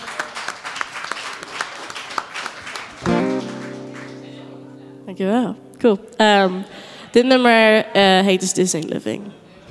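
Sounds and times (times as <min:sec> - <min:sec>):
audience applause: 0:00.0 - 0:04.7
speech: 0:05.1 - 0:09.4.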